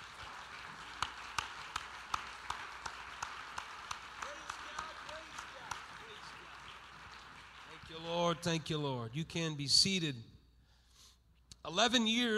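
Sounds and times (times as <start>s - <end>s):
church congregation clapping hands in a steady beat: 0.0s - 9.0s
speech: 8.0s - 10.3s, 11.7s - 12.3s.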